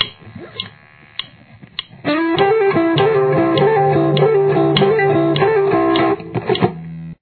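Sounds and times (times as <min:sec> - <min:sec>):
outro music: 0:02.1 - 0:06.2.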